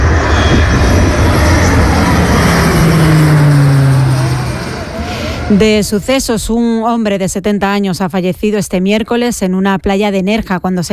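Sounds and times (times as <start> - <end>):
cargo firefighting plane flying over: 0.0 - 6.9
speech: 5.5 - 10.9.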